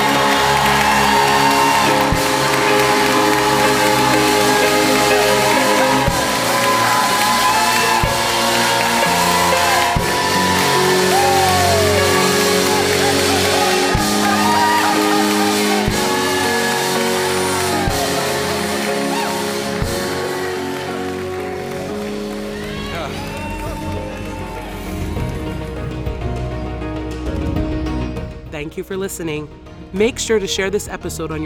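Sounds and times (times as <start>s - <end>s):
scattered high whoops and shouts: 0.0s - 21.2s, 22.5s - 25.4s
audience clapping and cheering: 0.0s - 28.1s
speech: 29.0s - 31.4s.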